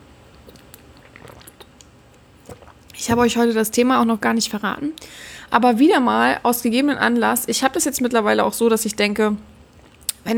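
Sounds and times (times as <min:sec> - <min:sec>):
person drinking still water: 0:00.3 - 0:03.6
speech: 0:03.0 - 0:09.5.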